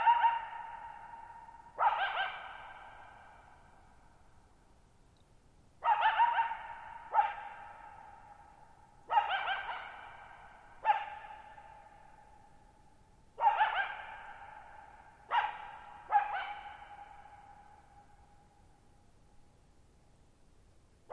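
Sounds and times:
coyote barking: 0.0s - 3.6s, 5.8s - 8.4s, 9.1s - 12.4s, 13.4s - 18.1s.

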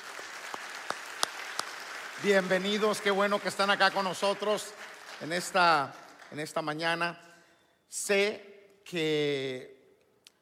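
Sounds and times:
audience applause: 0.0s - 6.7s
speech: 2.2s - 7.2s, 7.9s - 9.7s.

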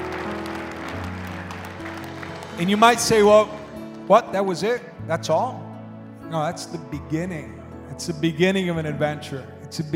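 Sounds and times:
audience clapping and applauding: 0.0s - 4.4s
speech: 2.6s - 5.6s, 6.3s - 9.9s.

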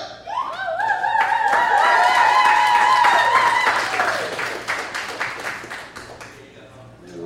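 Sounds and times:
crowd cheering and whooping for DJ: 0.2s - 4.5s
dense steady applause: 1.1s - 6.4s.

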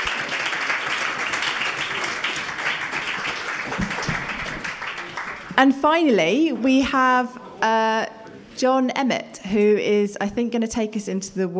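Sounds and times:
audience applause: 0.0s - 5.6s
speech: 5.6s - 11.5s.

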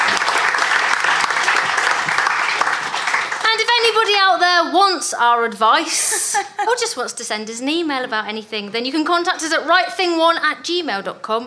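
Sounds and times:
laughter: 0.0s - 4.1s, 5.7s - 7.4s
applause: 0.0s - 4.2s
speech: 3.9s - 11.4s.

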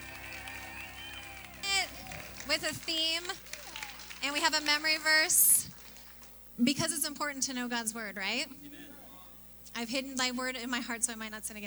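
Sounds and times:
church audience applauding and cheering: 0.0s - 6.3s
speech: 2.5s - 3.5s, 4.2s - 5.4s, 6.6s - 8.7s, 9.8s - 11.6s.

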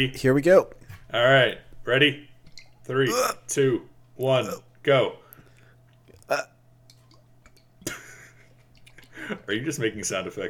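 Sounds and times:
speech: 0.0s - 2.3s, 2.9s - 5.2s, 6.3s - 6.5s, 9.3s - 10.4s
low steady hum: 0.0s - 10.4s
person gulping eggnog from a bottle: 3.1s - 3.4s, 5.9s - 7.7s.

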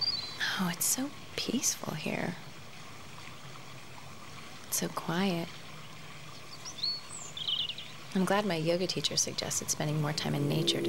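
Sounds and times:
speech: 0.6s - 2.5s, 4.8s - 5.6s, 8.1s - 10.8s
small bird chirping: 6.6s - 7.9s.

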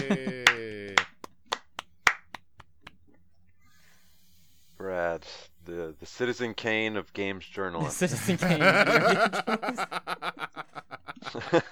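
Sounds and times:
speech: 0.0s - 0.4s, 5.2s - 10.6s, 11.3s - 11.7s
laughter: 0.0s - 1.3s, 5.7s - 11.7s
round of applause: 0.0s - 3.0s.

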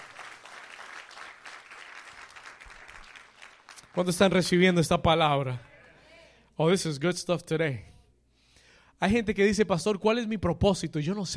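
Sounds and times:
audience applause: 0.0s - 4.3s
speech: 4.0s - 5.7s, 6.6s - 7.9s, 9.0s - 11.3s.

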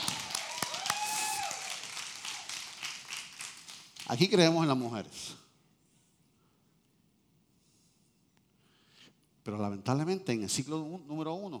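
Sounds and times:
audience applause: 0.0s - 4.2s
speech: 4.1s - 5.4s, 9.5s - 11.5s.

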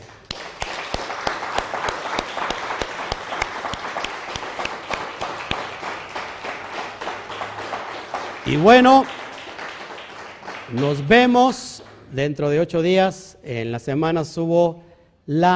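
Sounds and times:
group applause: 0.0s - 12.4s
speech: 8.5s - 9.2s, 10.7s - 15.5s.

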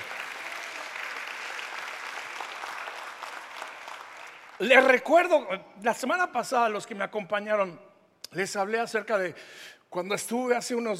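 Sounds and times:
audience applause: 0.0s - 4.9s
speech: 4.6s - 10.9s.

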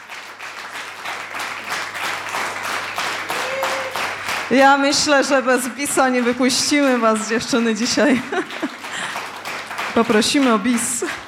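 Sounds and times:
applause: 0.0s - 11.2s
speech: 4.5s - 8.8s, 10.0s - 11.0s
laughter: 7.9s - 9.2s.

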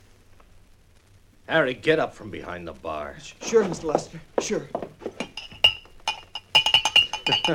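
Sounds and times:
speech: 1.5s - 4.9s, 7.3s - 7.5s
whiskey glasses clinking on a bar: 3.4s - 7.5s.

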